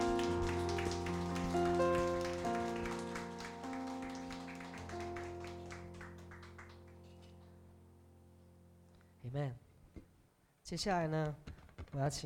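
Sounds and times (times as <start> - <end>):
audience clapping hands: 0.0 - 7.6
speech: 10.7 - 12.2.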